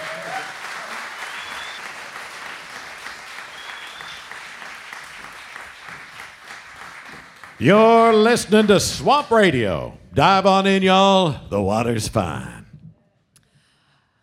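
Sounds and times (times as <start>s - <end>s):
audience applause: 0.0s - 9.0s
speech: 7.6s - 12.6s.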